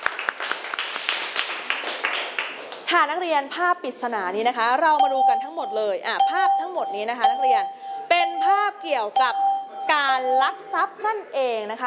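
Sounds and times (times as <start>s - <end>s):
students in a classroom clapping for themselves: 0.0s - 2.9s
speech: 2.9s - 11.8s.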